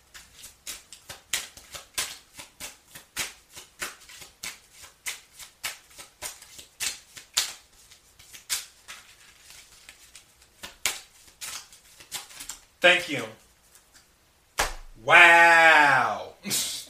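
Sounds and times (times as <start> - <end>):
oracle cards being shuffled: 0.1 - 12.7, 13.4 - 14.1
speech: 12.8 - 13.4, 15.0 - 16.7.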